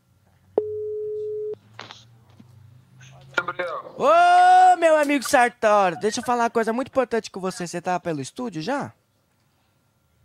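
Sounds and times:
telephone tone while a call is dialled: 0.6s - 1.6s
speech: 3.6s - 9.0s.

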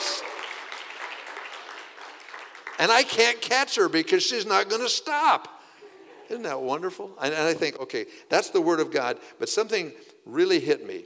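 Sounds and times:
audience applause: 0.0s - 3.1s
speech: 2.8s - 5.6s, 6.3s - 11.0s.

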